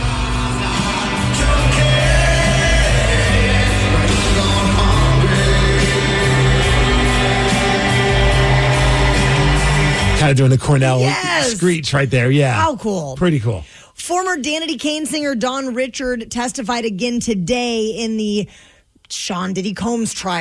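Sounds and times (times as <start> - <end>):
concert crowd singing along: 0.0 - 10.2
speech: 10.3 - 20.3.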